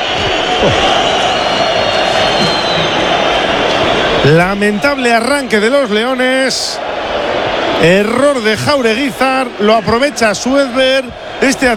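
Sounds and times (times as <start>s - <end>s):
football stadium crowd roaring at a goal: 0.0s - 11.7s
speech: 0.6s - 1.1s, 4.2s - 11.7s.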